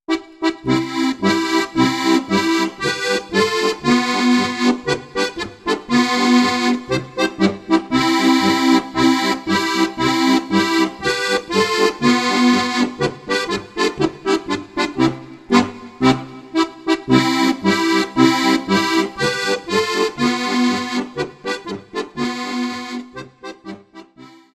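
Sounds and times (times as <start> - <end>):
polka music: 0.1 - 24.5.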